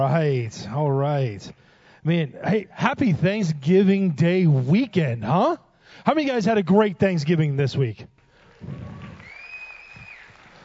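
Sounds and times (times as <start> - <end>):
speech: 0.0 - 8.8
audience clapping: 8.2 - 10.6.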